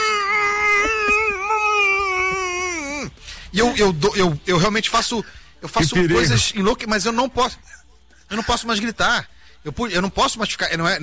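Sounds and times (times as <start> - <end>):
person groaning: 0.0 - 3.2
speech: 3.6 - 11.0.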